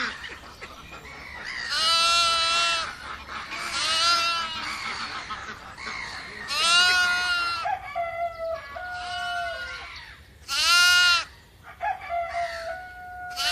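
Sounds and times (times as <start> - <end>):
poultry clucking and squawking: 0.0 - 13.5
farm animals bleating: 1.6 - 5.2, 6.2 - 7.7, 8.9 - 9.9, 10.5 - 11.3, 13.2 - 13.5.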